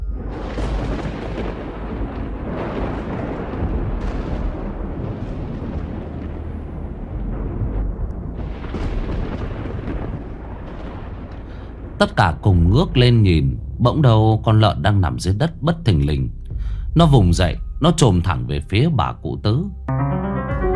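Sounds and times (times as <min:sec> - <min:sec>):
deafening thunder rumbling: 0:00.0 - 0:16.0
speech: 0:12.0 - 0:16.4, 0:17.0 - 0:20.0.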